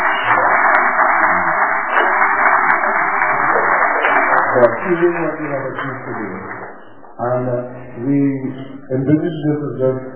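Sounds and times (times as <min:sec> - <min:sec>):
audience applause: 0:00.0 - 0:07.0
speech: 0:04.6 - 0:10.1.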